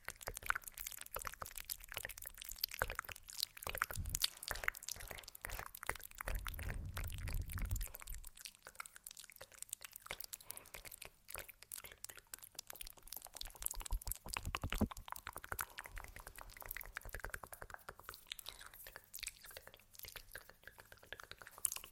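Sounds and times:
moist mouth clicks and smacks: 0.0 - 21.9
low thudding rumble: 6.6 - 8.0.

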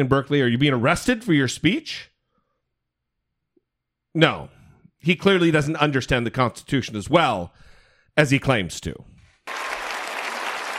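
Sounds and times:
speech: 0.0 - 2.1, 4.2 - 7.6, 8.2 - 9.6
audience clapping: 9.4 - 10.7.

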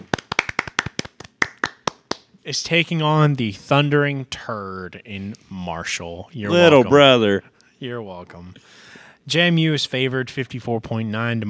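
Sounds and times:
applause: 0.0 - 2.3
speech: 2.4 - 11.4.

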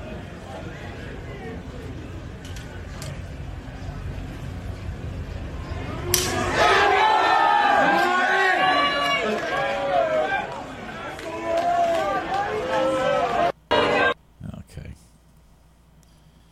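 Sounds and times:
spectators yelling at golf players: 5.6 - 14.2.

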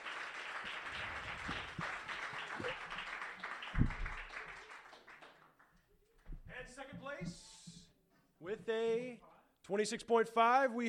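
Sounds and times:
audience applause: 0.0 - 5.6
speech: 8.7 - 10.8.

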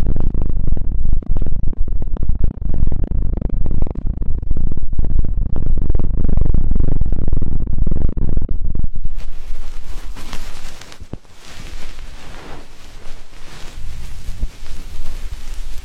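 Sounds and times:
deep ear cleaning and massage: 0.0 - 15.8
hissing rustle: 9.1 - 15.8.

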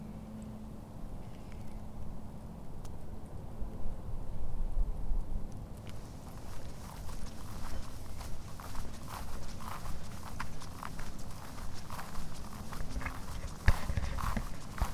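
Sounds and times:
faint hum: 0.0 - 14.9
footsteps crunching on a trail in Withlacoochee State Forest: 5.8 - 14.9.

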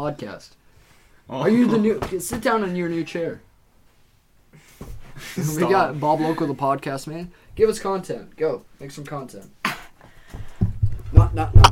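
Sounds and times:
speech: 0.0 - 0.6, 1.3 - 3.5, 4.8 - 9.6, 11.1 - 11.6
microphone knocked over and breaking: 10.6 - 11.6.

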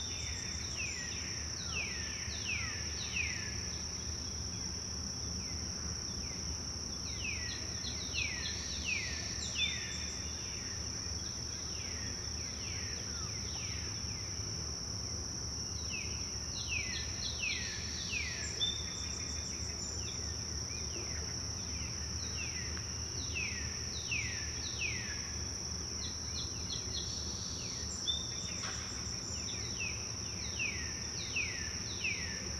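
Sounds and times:
high insect whine in the woods: 0.0 - 32.5.

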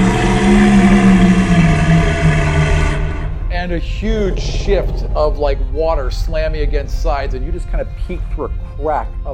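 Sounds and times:
dragon turtle roar sound effect: 0.0 - 8.0
speech: 3.8 - 9.3.

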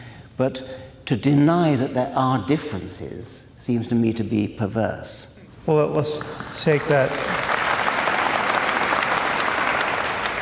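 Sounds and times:
speech: 0.4 - 7.5
audience applauding: 6.1 - 10.3.

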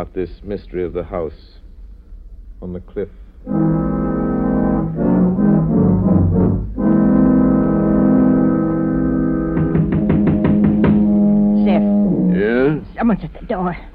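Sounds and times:
speech: 0.0 - 1.6, 2.6 - 3.8, 13.1 - 13.9
foghorn: 3.4 - 12.8.

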